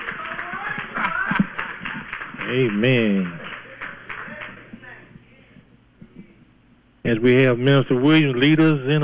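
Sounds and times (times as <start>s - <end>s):
audience clapping hands: 0.0s - 5.1s
speech: 2.5s - 3.4s, 7.1s - 9.0s.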